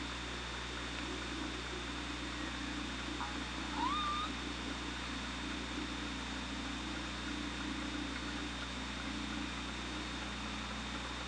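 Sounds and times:
underwater hum and hiss: 0.0s - 11.2s
killer whale call: 3.7s - 4.4s.

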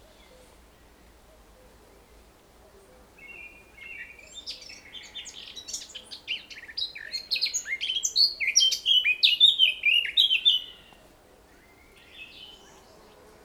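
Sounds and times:
Eurasian blackcap song: 3.3s - 10.8s.

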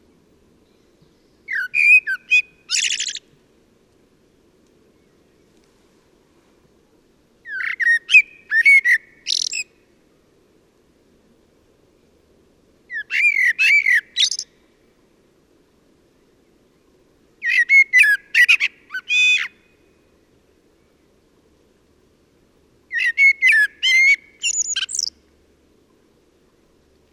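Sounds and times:
common blackbird singing: 0.7s - 3.2s, 7.4s - 9.7s, 12.9s - 14.5s, 17.4s - 19.6s, 22.9s - 25.2s.

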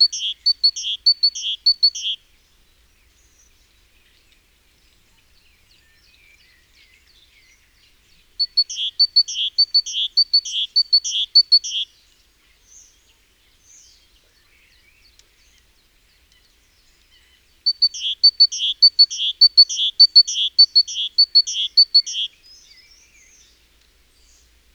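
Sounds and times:
great tit calls: 0.0s - 2.2s, 8.3s - 11.9s, 14.7s - 23.6s.

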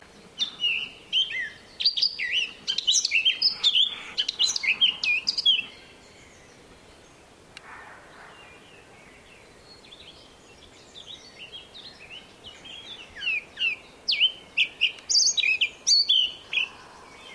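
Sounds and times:
Eurasian blackcap chirping: 0.4s - 5.8s, 11.0s - 16.7s.

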